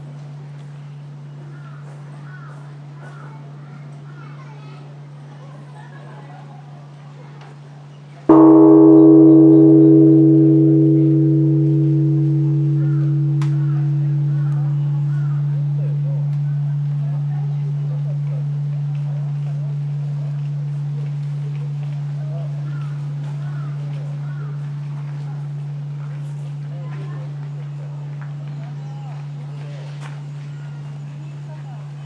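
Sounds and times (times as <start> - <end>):
temple bell ringing: 8.3 - 24.5.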